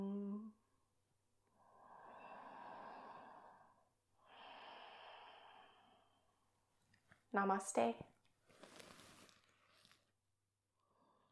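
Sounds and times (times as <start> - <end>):
breathing in through the nose and out through the mouth: 1.4 - 6.7, 10.7 - 11.3
speech: 7.4 - 8.1.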